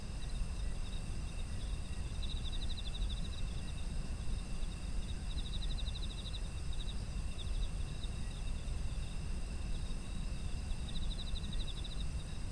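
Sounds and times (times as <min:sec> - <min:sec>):
insects trilling: 0:00.0 - 0:12.5.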